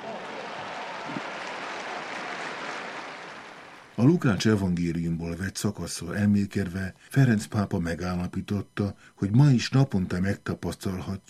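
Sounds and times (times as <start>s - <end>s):
crowd applause: 0.0s - 4.3s
speech: 4.0s - 11.2s.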